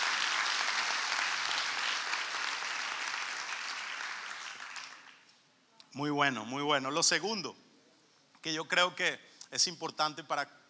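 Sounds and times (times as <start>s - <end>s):
audience applause: 0.0s - 5.2s
speech: 6.0s - 7.6s, 8.4s - 10.6s.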